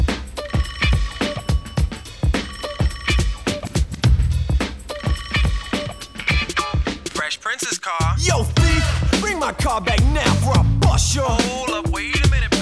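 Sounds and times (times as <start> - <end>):
steady thumping musical backing: 0.0 - 12.6
telephone ringing: 0.4 - 3.9, 4.9 - 6.9
speech: 9.6 - 11.6.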